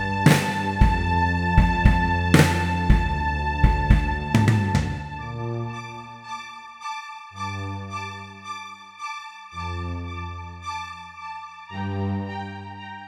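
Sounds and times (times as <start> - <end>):
musical accompaniment: 0.0 - 5.2.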